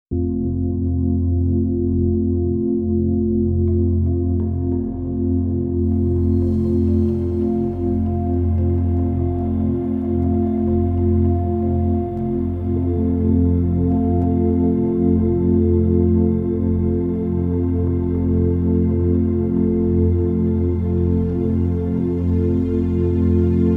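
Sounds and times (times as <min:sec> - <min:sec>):
deep sleep relaxation meditation music: 0:00.1 - 0:23.7.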